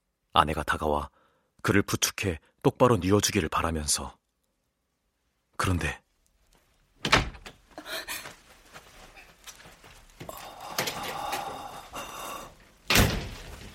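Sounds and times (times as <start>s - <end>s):
speech: 0.4s - 4.2s, 5.6s - 6.0s
room door closing: 7.0s - 7.6s, 12.8s - 13.7s.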